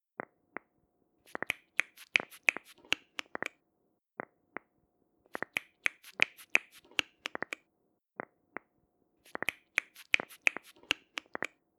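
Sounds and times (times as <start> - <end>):
finger knuckles cracking: 1.3 - 3.6, 5.3 - 7.6, 9.3 - 11.6.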